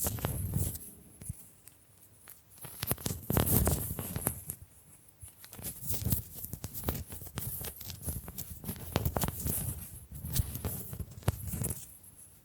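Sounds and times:
bamboo tapped, scratched and brushed: 0:00.0 - 0:12.0.

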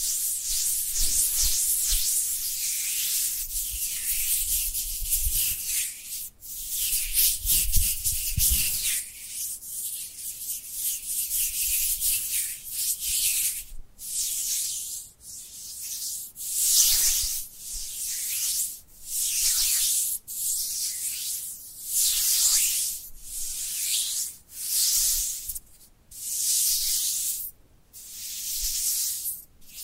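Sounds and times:
dry hands rubbing together: 0:00.0 - 0:29.8.

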